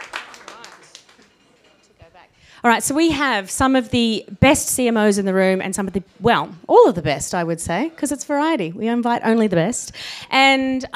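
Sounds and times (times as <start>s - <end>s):
crowd applause: 0.0s - 1.4s
speech: 2.6s - 10.9s.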